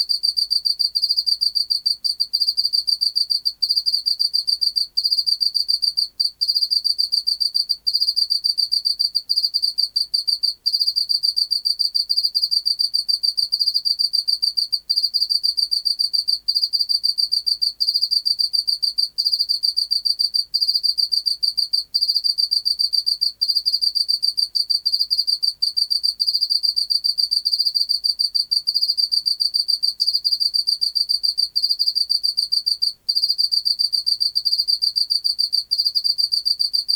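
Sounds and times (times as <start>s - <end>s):
Teleogryllus oceanicus chirping: 0.0s - 36.9s.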